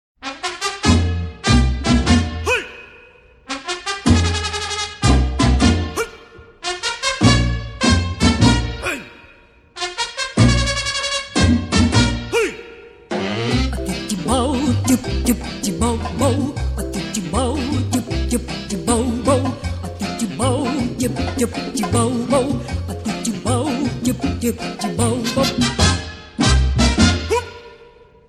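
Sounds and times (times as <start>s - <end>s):
mambo music: 0.2s - 9.1s, 9.8s - 27.7s.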